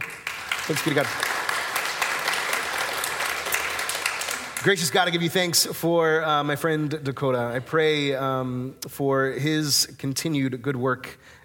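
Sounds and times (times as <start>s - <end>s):
audience clapping: 0.0s - 5.6s
speech: 0.7s - 1.4s, 4.6s - 11.4s.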